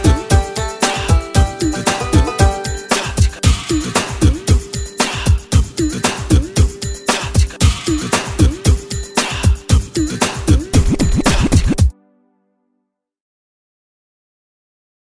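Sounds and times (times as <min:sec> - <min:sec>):
instrumental dance class music: 0:00.0 - 0:11.9.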